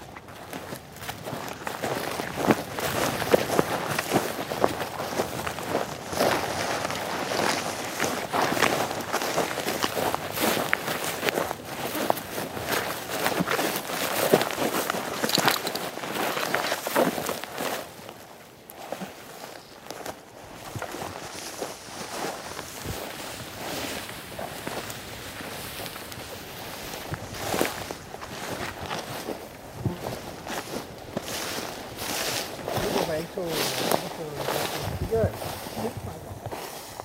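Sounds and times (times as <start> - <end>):
crunching footsteps of people walking down through a flower garden: 0.0 - 37.0.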